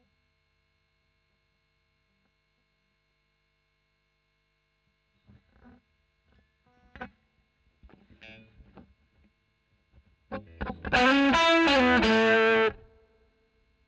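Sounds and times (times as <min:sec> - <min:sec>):
overdriven electric guitar recorded with a Royer microphone: 0:07.9 - 0:08.9, 0:10.0 - 0:13.0.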